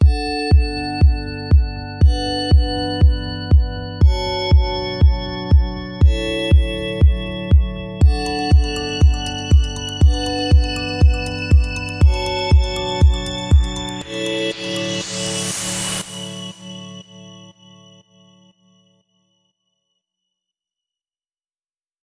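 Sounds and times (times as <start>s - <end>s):
electro pop music: 0.0s - 17.6s.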